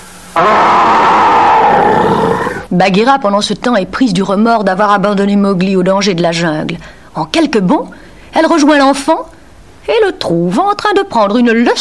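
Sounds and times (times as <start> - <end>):
speech: 0.4 - 0.9, 2.7 - 11.8
voice imitating a big bear's growl: 0.4 - 2.7.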